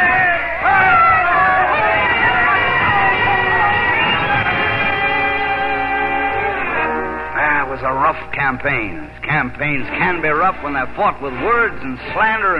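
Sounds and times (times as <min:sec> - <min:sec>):
large crowd cheering and shouting as at a rally: 0:00.0 - 0:06.8
speech: 0:08.1 - 0:12.5.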